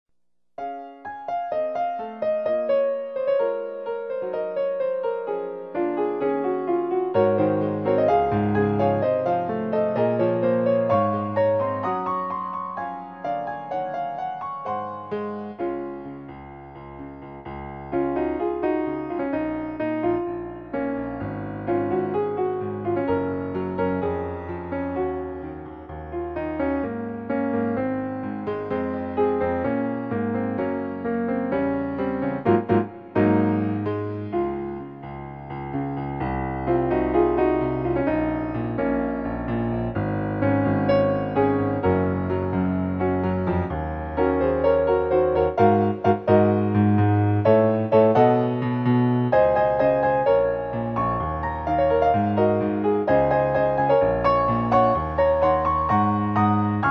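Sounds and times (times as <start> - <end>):
piano: 0.5 - 56.8.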